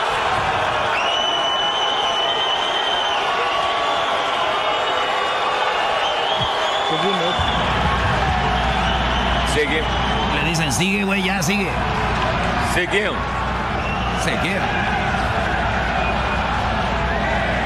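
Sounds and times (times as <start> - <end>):
stadium crowd cheering wildly: 0.0 - 17.6
shrill whistle-like tones: 0.9 - 5.1, 5.9 - 11.0, 13.8 - 14.4
low thumps: 7.4 - 8.9
speech: 9.6 - 13.5, 14.2 - 15.0.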